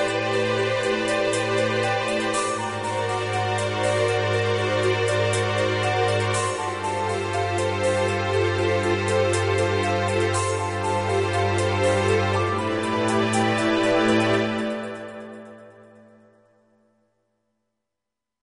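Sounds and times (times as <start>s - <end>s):
piano in C minor: 0.0s - 16.8s.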